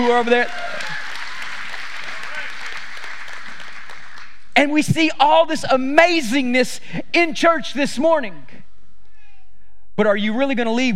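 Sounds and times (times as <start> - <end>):
speech: 0.0 - 0.7, 4.6 - 8.6, 10.0 - 10.9
audience hand clapping: 0.0 - 4.5.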